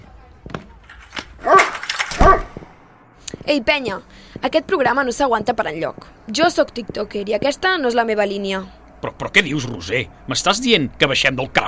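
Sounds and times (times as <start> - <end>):
dog barking: 1.4 - 2.5
speech: 3.5 - 11.6.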